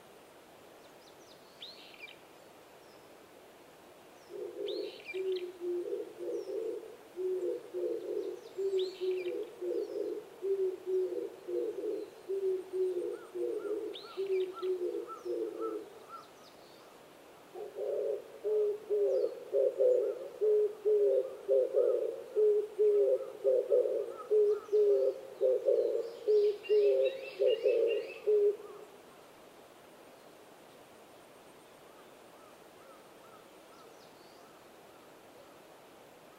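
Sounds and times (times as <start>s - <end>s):
Oriental turtle dove cooing: 4.3s - 16.3s, 17.5s - 29.0s.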